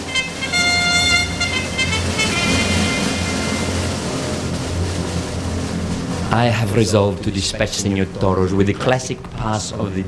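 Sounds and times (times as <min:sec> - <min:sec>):
trumpet call: 0:00.0 - 0:04.1
rumbling noise: 0:00.0 - 0:10.0
speech: 0:06.3 - 0:10.0.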